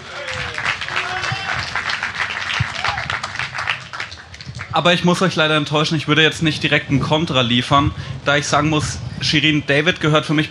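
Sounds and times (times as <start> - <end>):
audience applause: 0.0 - 4.8
speech: 4.8 - 10.4.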